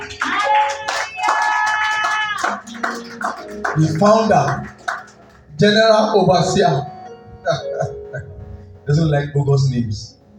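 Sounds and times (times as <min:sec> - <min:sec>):
audience clapping: 0:00.0 - 0:06.2
speech: 0:03.8 - 0:04.8, 0:05.6 - 0:06.9, 0:08.9 - 0:10.1.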